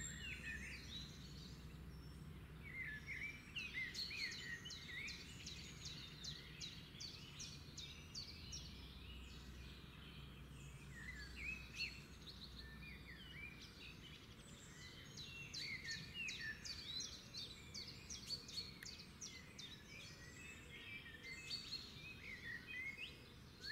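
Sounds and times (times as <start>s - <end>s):
several birds singing in the morning: 0.0s - 23.6s.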